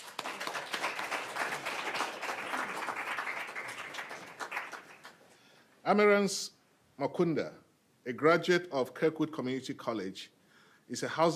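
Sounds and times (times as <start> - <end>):
audience clapping: 0.0 - 5.4
speech: 5.8 - 11.3.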